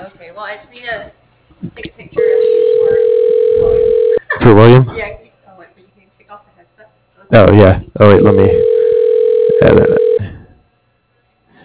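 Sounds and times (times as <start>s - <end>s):
speech: 0.4s - 2.2s, 4.4s - 5.2s, 7.3s - 8.7s, 9.6s - 10.1s
telephone ringing: 2.2s - 4.2s, 8.0s - 10.2s.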